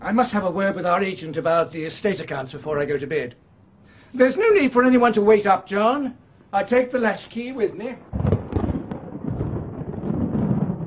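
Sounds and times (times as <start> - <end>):
speech: 0.0 - 3.5, 4.1 - 8.2
thunder clap: 7.9 - 10.8.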